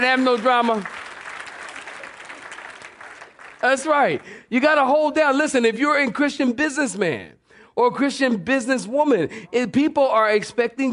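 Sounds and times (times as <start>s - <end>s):
speech: 0.0s - 1.0s, 3.6s - 10.9s
audience clapping hands: 0.0s - 4.5s.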